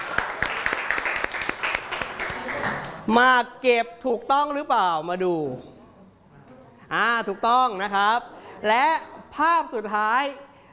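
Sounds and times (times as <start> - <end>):
classroom clapping for a classmate: 0.0 - 3.1
speech: 3.1 - 5.8, 6.9 - 10.4.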